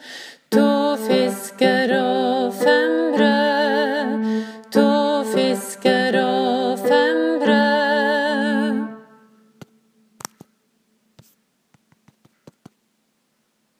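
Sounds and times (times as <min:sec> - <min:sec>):
tenor voice singing overtone: 0:00.5 - 0:09.3.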